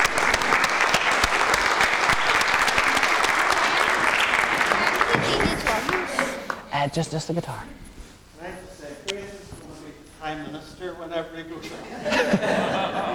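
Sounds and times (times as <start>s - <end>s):
round of applause: 0.0s - 6.6s
speech: 6.8s - 7.9s, 10.3s - 13.1s
laughter: 11.6s - 13.1s.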